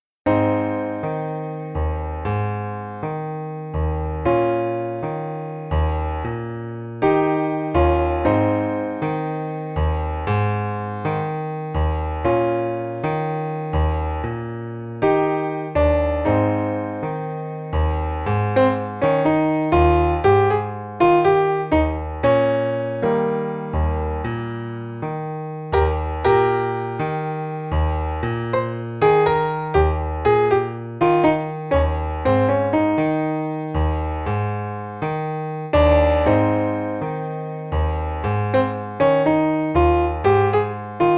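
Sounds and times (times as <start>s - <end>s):
solo piano: 0.0s - 41.1s.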